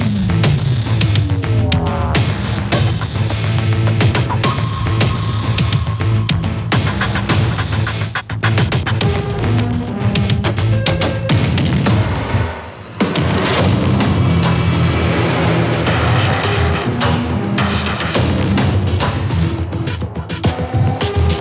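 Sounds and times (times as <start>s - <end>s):
epic drum loop: 0.0s - 21.3s
synthetic synth loop at 105 BPM in 4/4: 0.0s - 21.3s.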